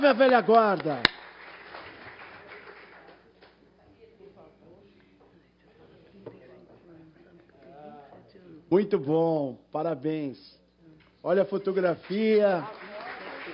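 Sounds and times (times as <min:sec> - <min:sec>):
speech: 0:00.0 - 0:01.1, 0:08.7 - 0:10.6, 0:11.2 - 0:12.9
crowd applause: 0:00.0 - 0:03.6, 0:11.8 - 0:13.5.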